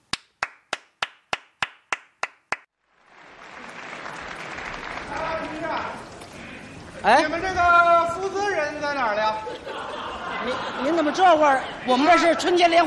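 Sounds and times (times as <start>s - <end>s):
audience applause: 1.3s - 7.5s
speech: 7.0s - 12.8s
laughter: 9.0s - 12.8s.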